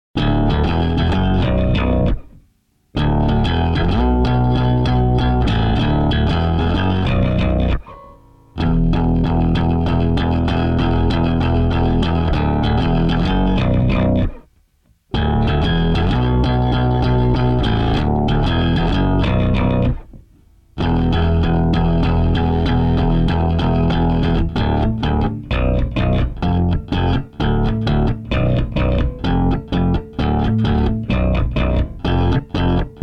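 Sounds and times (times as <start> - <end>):
happy bass line: 0.2 - 2.4, 3.0 - 7.8, 8.6 - 14.5, 15.1 - 20.1, 20.8 - 33.0.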